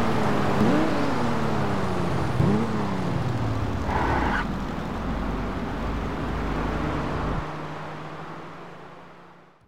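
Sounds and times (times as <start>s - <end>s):
Ferrari 612 Scaglietti engine: 0.0s - 9.6s.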